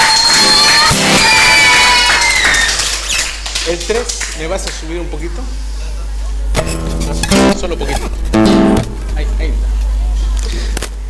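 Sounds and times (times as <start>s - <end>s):
audience cheering with shouts and whoops: 0.0s - 3.4s
audience applause: 0.0s - 4.8s
speech: 3.9s - 5.8s, 6.6s - 9.8s, 10.4s - 10.8s.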